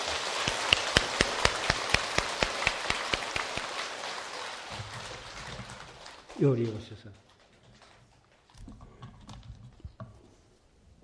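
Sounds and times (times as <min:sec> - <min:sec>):
audience applause: 0:00.0 - 0:07.1
speech: 0:06.4 - 0:07.3.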